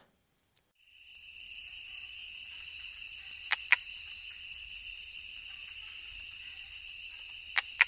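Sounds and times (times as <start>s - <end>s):
Osteocephalus tree frog calling in the Ecuadorian Amazon: 2.8s - 7.8s.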